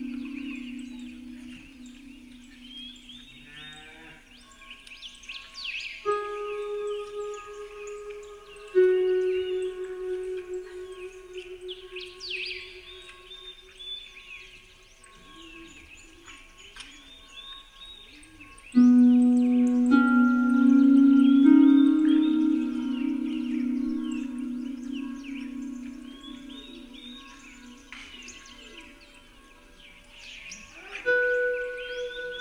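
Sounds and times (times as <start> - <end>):
relaxing spa music on Celtic harp: 0.0 - 3.3, 6.1 - 13.8, 18.8 - 28.8, 31.0 - 32.3
birds: 0.0 - 32.3.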